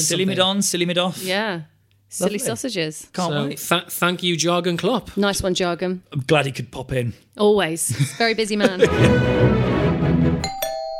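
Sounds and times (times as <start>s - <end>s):
speech: 0.0s - 10.6s
laughter: 7.9s - 9.5s
doorbell chiming: 10.4s - 10.9s.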